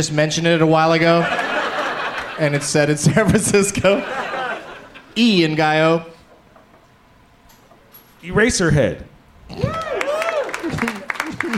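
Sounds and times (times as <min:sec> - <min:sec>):
speech: 0:00.0 - 0:01.5, 0:02.4 - 0:04.4, 0:05.2 - 0:06.1, 0:08.2 - 0:10.0
laughter: 0:01.0 - 0:05.2, 0:09.7 - 0:11.5
audience applauding: 0:09.6 - 0:11.5.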